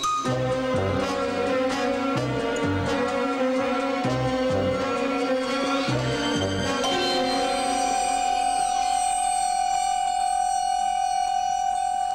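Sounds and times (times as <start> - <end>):
melody: 0.0 - 12.1.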